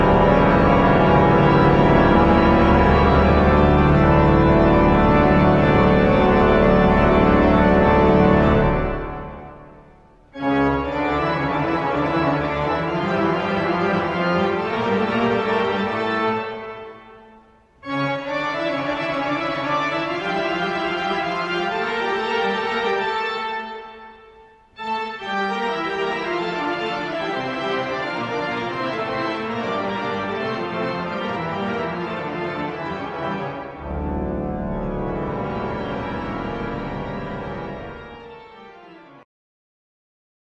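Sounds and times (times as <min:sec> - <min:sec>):
pipe organ: 0:00.0 - 0:39.2.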